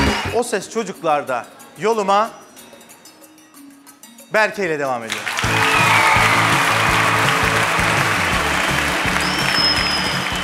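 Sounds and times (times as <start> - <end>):
speech: 0.4 - 2.4, 4.3 - 5.3
audience applause: 5.1 - 10.4.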